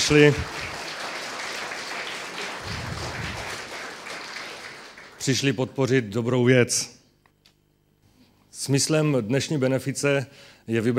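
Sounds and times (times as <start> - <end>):
audience applause: 0.0 - 5.6
speech: 0.1 - 0.6, 5.2 - 7.0, 8.6 - 10.9.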